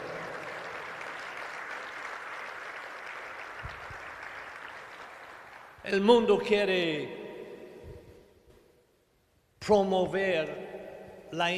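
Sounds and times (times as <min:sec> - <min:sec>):
audience applause: 0:00.0 - 0:05.8
speech: 0:05.8 - 0:07.2, 0:09.6 - 0:10.6, 0:11.3 - 0:11.5.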